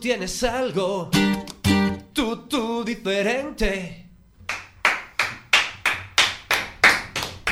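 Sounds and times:
speech: 0.1s - 1.5s, 2.1s - 4.0s
studio audience clapping in rhythm: 4.5s - 7.4s.

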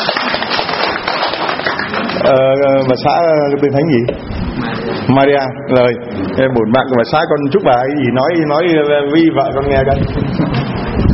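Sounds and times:
crowd clapping: 0.0s - 2.4s
speech: 2.3s - 10.8s.

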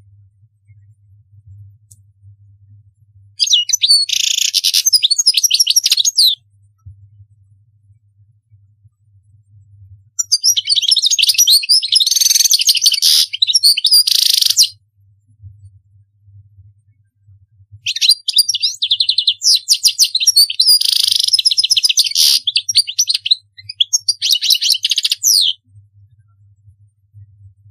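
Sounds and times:
European goldfinch singing: 3.4s - 6.4s, 10.2s - 14.8s, 17.9s - 25.6s.

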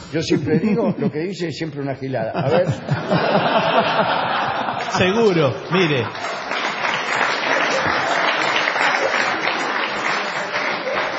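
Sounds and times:
laughter: 0.1s - 1.5s, 2.1s - 6.6s, 7.3s - 11.1s
speech: 0.1s - 6.5s
audience applause: 3.2s - 11.1s.

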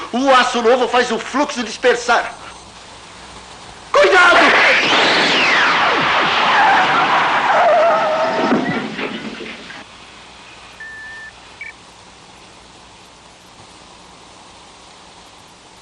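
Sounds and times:
speech: 0.1s - 2.5s
DeLorean tires squealing in skid: 4.4s - 9.8s
DeLorean car engine roaring at speed: 4.4s - 9.9s
brief high whines: 4.6s - 8.8s, 10.8s - 11.7s.

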